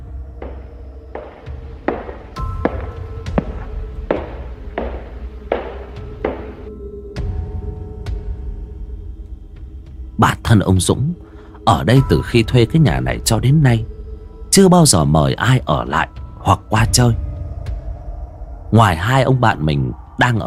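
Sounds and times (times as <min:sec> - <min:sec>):
echoing footsteps in a quiet house: 0:00.0 - 0:06.7
speech: 0:10.5 - 0:13.9, 0:14.5 - 0:17.2, 0:18.7 - 0:20.4.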